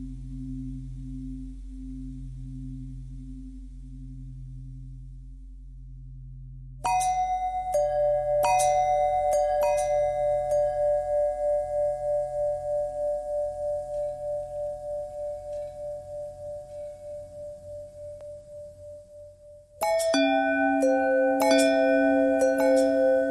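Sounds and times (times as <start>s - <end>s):
long bell ringing: 6.9s - 18.0s, 19.8s - 23.2s.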